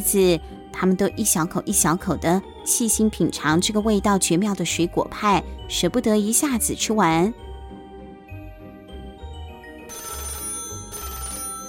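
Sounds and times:
speech: 0.0 - 7.4
telephone ringing in the kitchen: 9.9 - 11.6.

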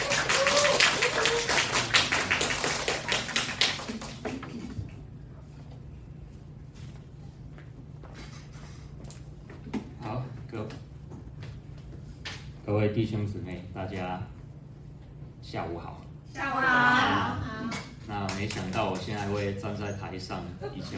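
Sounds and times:
audience applause: 0.0 - 4.8
low hum: 0.0 - 20.9
speech: 12.7 - 14.4, 15.5 - 20.9.

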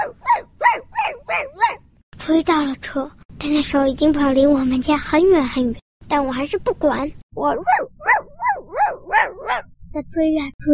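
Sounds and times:
dog barking wildly: 0.0 - 1.8, 7.6 - 9.7
speech: 2.3 - 7.9, 9.2 - 10.7.

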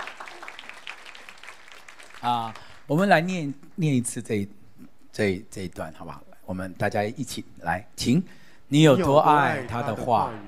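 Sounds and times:
audience clapping: 0.0 - 3.2
speech: 2.2 - 4.6, 5.2 - 10.4.

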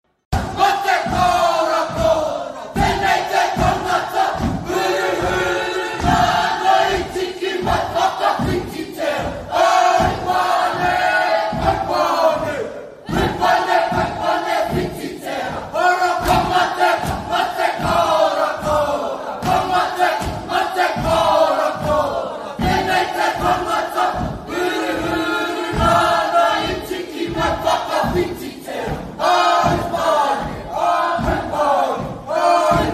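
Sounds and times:
rhythmic shouts: 0.3 - 32.9
stamping or slapping beats: 0.3 - 32.9
group chanting a Maori haka welcome dance: 0.4 - 32.9.

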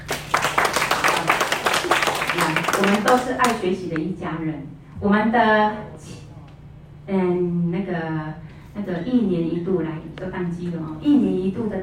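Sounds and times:
audience applause: 0.0 - 3.6
speech: 2.8 - 6.2, 7.1 - 11.8.

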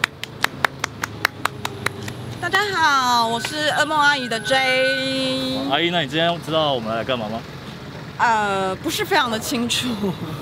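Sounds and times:
clapping to welcome a guest: 0.0 - 2.5
speech: 2.4 - 7.6, 8.2 - 10.4.

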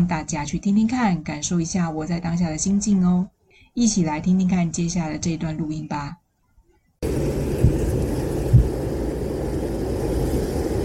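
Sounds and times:
speech: 0.0 - 6.2
train passing on a hiking route: 7.0 - 10.8.

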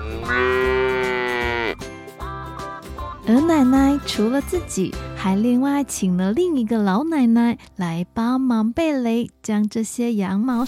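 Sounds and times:
cow mooing on a farm field while grazing on grass: 0.0 - 1.8
speech: 3.3 - 10.6.

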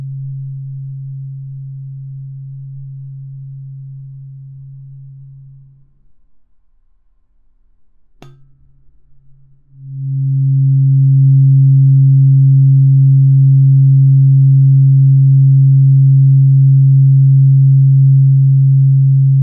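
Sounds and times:
136.1 Hz tuning fork tone: 0.0 - 19.4
sharp tap: 8.2 - 8.6.

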